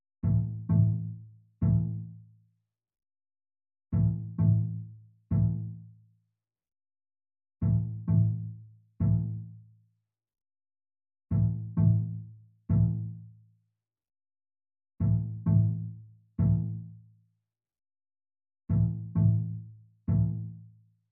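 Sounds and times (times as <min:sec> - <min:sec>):
strings: 0:00.2 - 0:02.1, 0:04.0 - 0:05.8, 0:07.6 - 0:09.4, 0:11.3 - 0:13.2, 0:15.0 - 0:16.8, 0:18.7 - 0:20.5.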